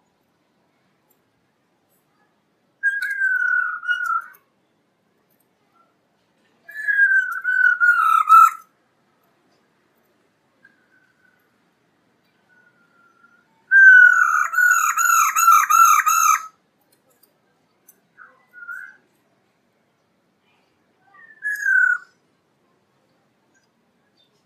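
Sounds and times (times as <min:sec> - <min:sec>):
laughingthrush whistled song: 0:02.8 - 0:04.4, 0:06.6 - 0:08.7, 0:12.4 - 0:16.5, 0:18.2 - 0:19.0, 0:21.1 - 0:22.2.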